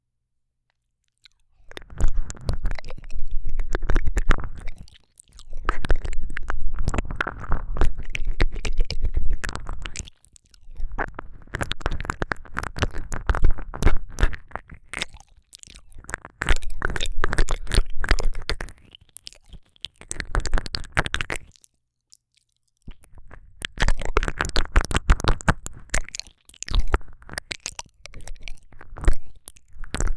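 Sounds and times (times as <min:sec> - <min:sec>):
deep ear licking: 0:01.2 - 0:21.6, 0:22.9 - 0:30.1.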